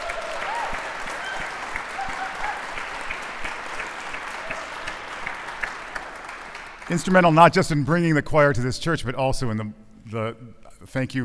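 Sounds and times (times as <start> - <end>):
audience round of applause: 0.0 - 7.5
speech: 6.9 - 11.2.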